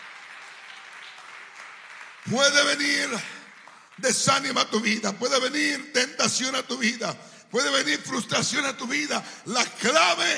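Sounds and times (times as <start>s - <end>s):
audience applauding: 0.0s - 4.5s
speech: 2.2s - 3.4s, 4.0s - 10.3s.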